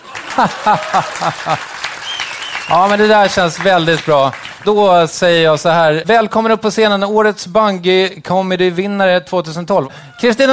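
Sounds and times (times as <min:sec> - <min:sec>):
audience laughing: 0:00.0 - 0:04.4
audience applauding: 0:00.0 - 0:05.6
speech: 0:00.4 - 0:01.7, 0:02.7 - 0:10.5.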